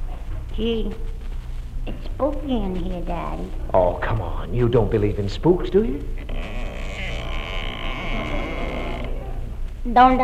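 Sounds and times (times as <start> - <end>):
speech: 0.6 - 1.2, 1.8 - 6.5, 9.8 - 10.2
door creaking: 6.1 - 9.6.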